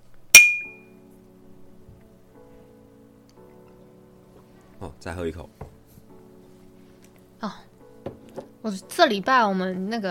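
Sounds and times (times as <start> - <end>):
glasses clinking in a toast: 0.4 - 0.8
speech: 4.8 - 5.7, 7.4 - 7.7, 8.6 - 10.0.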